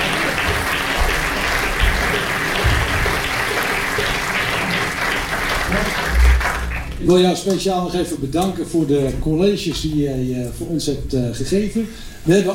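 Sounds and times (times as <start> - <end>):
audience applause: 0.0 - 7.2
speech: 7.1 - 12.5.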